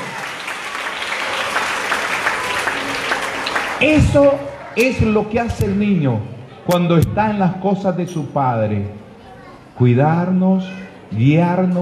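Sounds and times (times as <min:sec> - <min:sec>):
audience applause: 0:00.0 - 0:05.2
speech: 0:03.8 - 0:09.0, 0:09.8 - 0:11.8.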